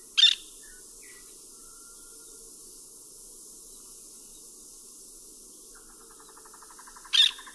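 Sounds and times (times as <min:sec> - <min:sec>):
Aratinga nana: 0:00.2 - 0:00.4, 0:07.1 - 0:07.4.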